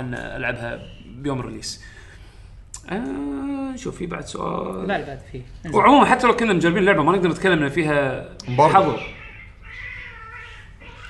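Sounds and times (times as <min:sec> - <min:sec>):
speech: 0:00.0 - 0:02.0, 0:02.9 - 0:09.2
cats fighting outside the door: 0:08.5 - 0:11.0.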